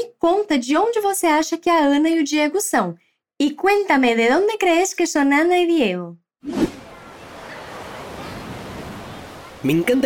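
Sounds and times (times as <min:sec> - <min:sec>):
speech: 0:00.2 - 0:06.7, 0:09.6 - 0:10.0
ocean waves on a beach: 0:06.6 - 0:10.0.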